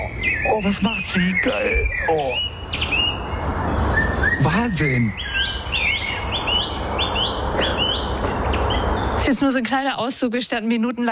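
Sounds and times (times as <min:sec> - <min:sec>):
Eurasian blackbird singing: 0:00.0 - 0:09.7
speech: 0:00.5 - 0:03.0, 0:04.4 - 0:05.6, 0:09.3 - 0:11.1.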